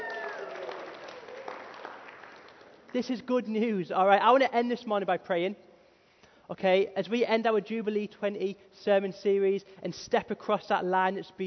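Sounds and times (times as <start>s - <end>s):
audience cheering: 0.0s - 2.1s
audience clapping: 0.0s - 3.1s
speech: 2.9s - 5.6s, 6.5s - 11.4s.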